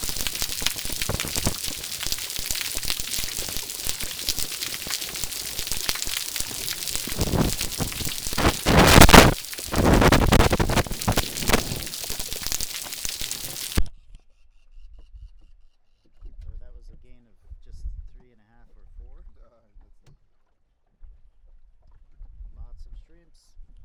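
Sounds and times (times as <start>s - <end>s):
shrimp soundscape: 0.0s - 13.8s.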